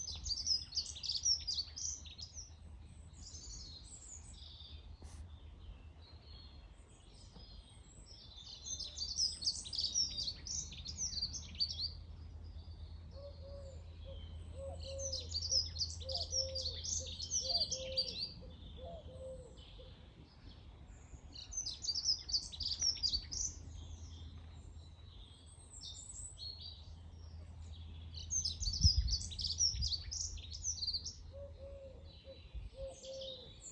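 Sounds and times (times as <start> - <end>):
birds chirping: 0.0 - 33.6
bird cooing: 13.2 - 20.0, 31.3 - 33.6.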